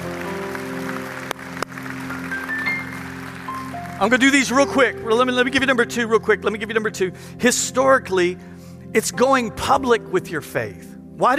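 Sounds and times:
audience applause: 0:00.0 - 0:04.7
speech: 0:04.0 - 0:11.3.

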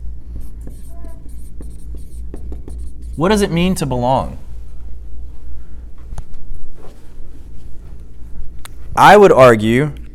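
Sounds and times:
pen writing: 0:00.3 - 0:03.3
speech: 0:03.2 - 0:04.4, 0:09.0 - 0:10.0.

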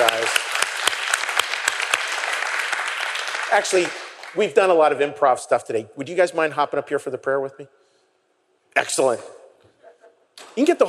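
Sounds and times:
audience applause: 0:00.0 - 0:04.7
speech: 0:03.5 - 0:07.8, 0:08.8 - 0:09.4, 0:10.4 - 0:10.8.

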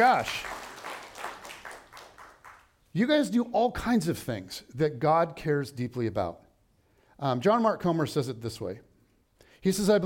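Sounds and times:
speech: 0:00.0 - 0:00.6, 0:02.9 - 0:06.4, 0:07.2 - 0:08.9, 0:09.6 - 0:10.0
audience applause: 0:00.0 - 0:02.7.

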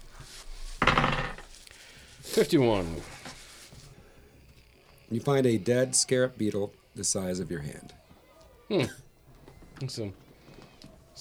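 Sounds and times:
percentile dice rolling on table: 0:00.7 - 0:01.6
speech: 0:02.4 - 0:03.1, 0:05.1 - 0:08.0, 0:08.7 - 0:09.0, 0:09.8 - 0:10.2.

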